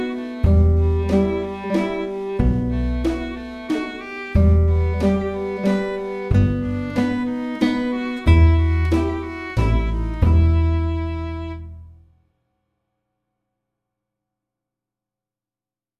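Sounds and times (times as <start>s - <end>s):
waltz music: 0.0s - 12.0s.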